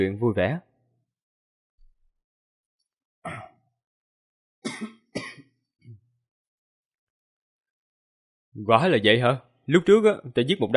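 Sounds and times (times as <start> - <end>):
speech: 0.0 - 0.7, 8.6 - 10.7
harsh breathy coughs: 3.3 - 3.6, 4.6 - 5.6.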